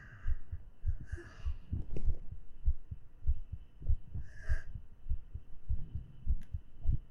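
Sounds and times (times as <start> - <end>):
fast heartbeat heard through a chest: 0.0 - 7.0.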